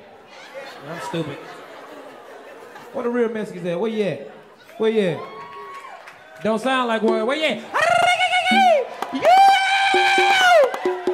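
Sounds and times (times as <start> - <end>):
laughter: 0.3 - 5.1
speech: 0.8 - 1.6, 2.9 - 5.3, 6.4 - 7.8, 8.5 - 9.2
audience clapping and cheering: 4.6 - 11.1.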